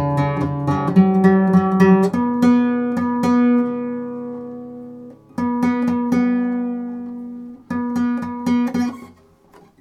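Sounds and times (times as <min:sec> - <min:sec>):
classical guitar tuning: 0:00.0 - 0:09.8.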